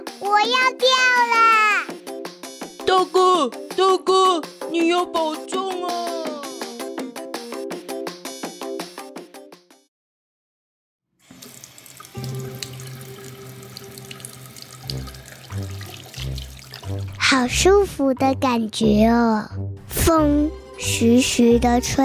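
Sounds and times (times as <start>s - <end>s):
speech: 0.2s - 1.6s, 2.9s - 6.4s, 17.4s - 22.0s
shower water running: 11.2s - 17.2s.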